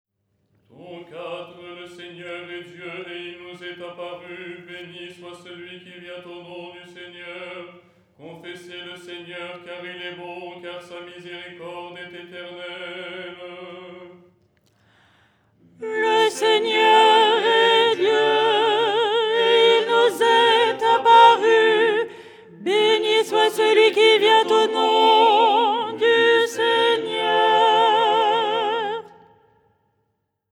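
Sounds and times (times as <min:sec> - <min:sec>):
soprano singing: 0:15.7 - 0:29.3.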